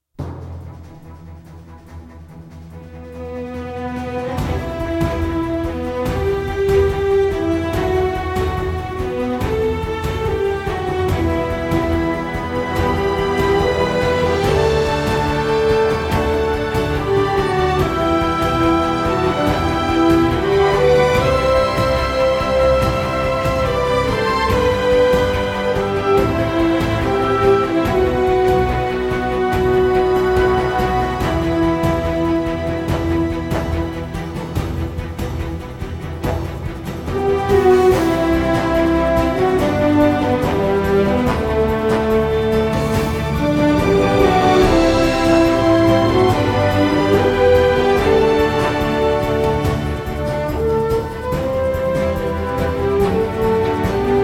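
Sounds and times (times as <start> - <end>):
promotional video background music: 0.1 - 54.2.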